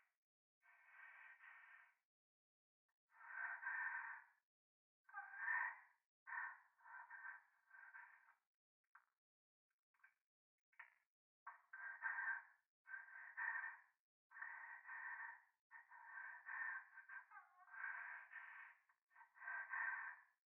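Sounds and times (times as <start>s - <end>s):
close breathing in the left ear in a toilet: 0.7s - 2.0s, 3.1s - 4.4s, 5.2s - 8.4s, 11.5s - 20.4s.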